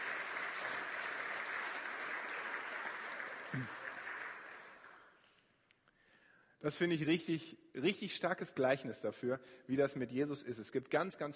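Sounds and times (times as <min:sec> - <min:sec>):
audience applause: 0:00.0 - 0:05.2
speech: 0:03.5 - 0:03.8, 0:06.6 - 0:11.3.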